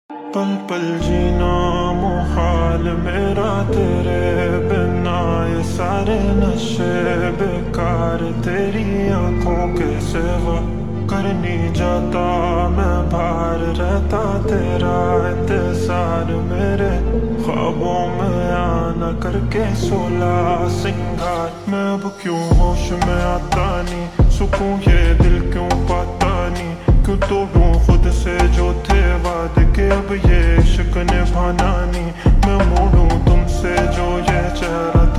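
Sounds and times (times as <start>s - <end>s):
slowed reverb music: 0.1s - 35.1s.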